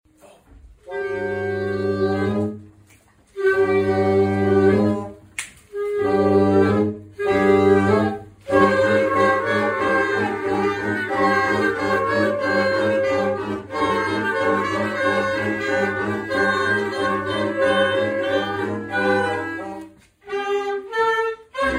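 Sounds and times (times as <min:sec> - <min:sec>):
orchestral wind instruments: 0:00.8 - 0:21.7.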